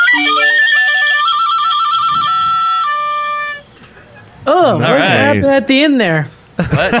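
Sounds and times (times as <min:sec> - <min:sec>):
recorder jingle melody: 0:00.0 - 0:03.8
speech: 0:04.7 - 0:06.9.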